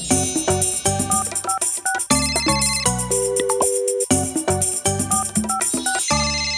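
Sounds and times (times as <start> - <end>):
telephone ringing with a bright melodic ringtone: 0.1 - 6.5.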